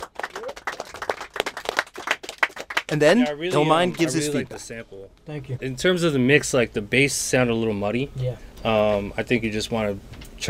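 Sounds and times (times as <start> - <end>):
audience applause after a beat at a feedback session: 0.0 - 3.4
speech: 2.9 - 10.4.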